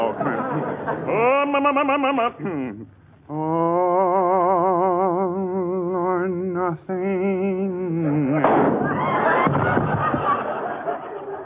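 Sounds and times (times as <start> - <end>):
laughter: 0.0 - 2.8, 8.1 - 11.4
speech: 0.9 - 5.5, 6.2 - 8.8
man singing: 1.1 - 8.5
gunshot sound effect in a radio comedy: 8.4 - 8.9.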